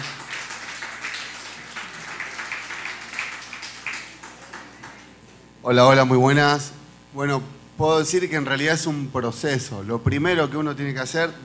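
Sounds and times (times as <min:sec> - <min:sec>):
audience applause: 0:00.0 - 0:05.2
speech: 0:05.6 - 0:11.4.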